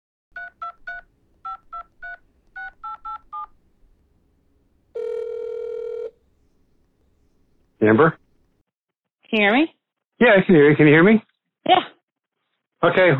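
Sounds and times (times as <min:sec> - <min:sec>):
two-tone telephone keypad beeps: 0:00.4 - 0:03.6, 0:05.0 - 0:06.2
speech: 0:07.8 - 0:08.2, 0:09.3 - 0:11.9, 0:12.8 - 0:13.1.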